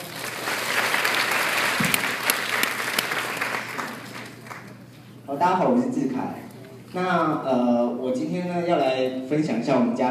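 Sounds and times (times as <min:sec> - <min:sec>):
audience applause: 0:00.0 - 0:04.9
speech: 0:05.4 - 0:10.0.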